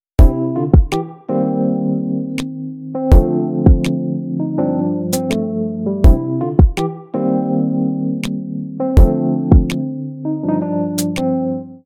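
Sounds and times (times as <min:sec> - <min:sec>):
music: 0:00.0 - 0:11.8.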